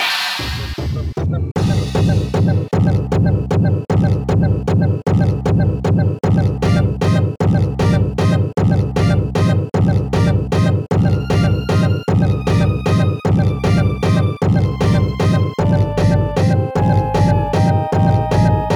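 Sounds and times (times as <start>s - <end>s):
heartbeat: 0.4s - 18.7s.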